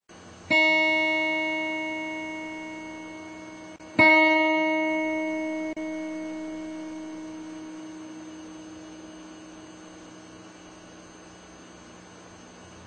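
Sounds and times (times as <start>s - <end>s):
acoustic guitar tuning up: 0.5s - 10.5s.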